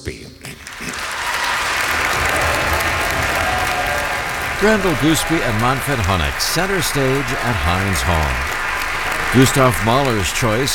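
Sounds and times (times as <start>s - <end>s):
audience applause at Heinz Hall in Pittsburgh: 0.5s - 10.7s
laughter: 0.6s - 10.7s
speech: 4.6s - 8.5s, 9.3s - 10.7s.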